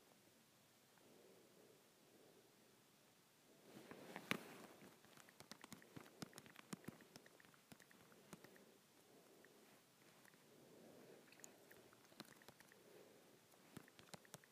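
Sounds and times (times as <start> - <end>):
soft low murmur: 0.0 - 14.5
faint rustling: 3.6 - 14.2
fingers tapping on an Android phone screen: 4.1 - 8.7, 11.2 - 12.8, 13.5 - 14.5.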